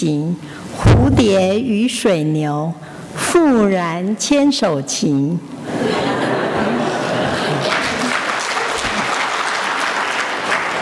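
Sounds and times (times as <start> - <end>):
speech: 0.0 - 5.8
faint voices and chuckles: 5.6 - 8.2
crowd applauding: 7.3 - 10.7.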